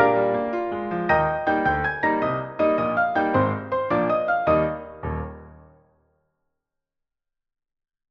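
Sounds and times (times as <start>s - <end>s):
piano duet: 0.0s - 5.9s.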